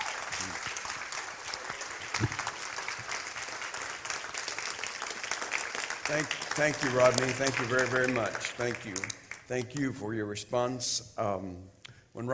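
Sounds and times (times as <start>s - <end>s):
audience applause: 0.0s - 9.6s
speech: 2.2s - 2.4s, 6.1s - 12.3s.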